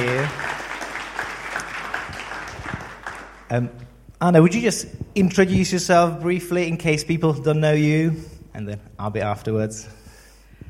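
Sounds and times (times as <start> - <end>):
audience applause: 0.0 - 3.5
speech: 3.5 - 10.0.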